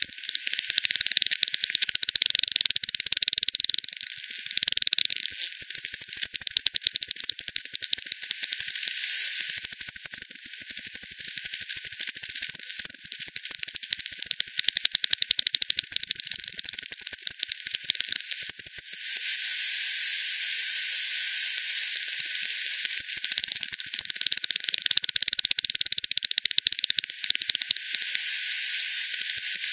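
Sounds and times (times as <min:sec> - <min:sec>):
bat echolocation pulses: 0:00.0 - 0:19.3, 0:21.5 - 0:29.7
hiss: 0:08.9 - 0:09.6, 0:18.9 - 0:23.1, 0:27.3 - 0:29.7.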